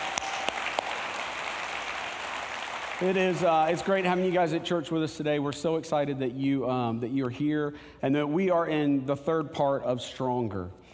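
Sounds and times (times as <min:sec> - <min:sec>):
church congregation applause during a service: 0:00.0 - 0:04.5
speech: 0:03.0 - 0:10.8.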